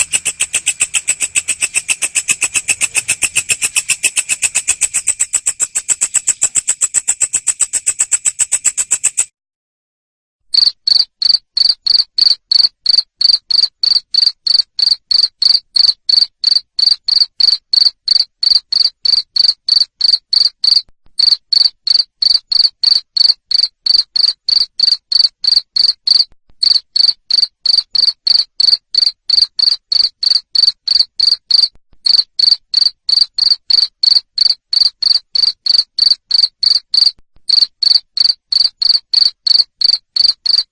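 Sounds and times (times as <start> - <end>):
cricket chirping: 0.0 - 9.3, 10.5 - 40.7.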